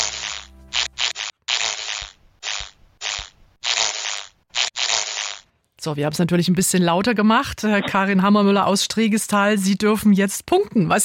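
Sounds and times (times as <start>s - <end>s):
ladybird wings whirring in flight: 0.0s - 5.4s
speech: 5.8s - 11.0s.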